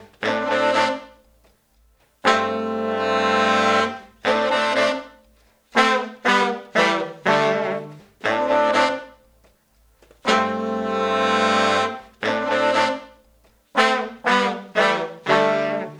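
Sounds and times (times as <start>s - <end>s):
70s analog funk horns: 0.0s - 1.4s, 2.2s - 9.5s, 10.2s - 15.9s.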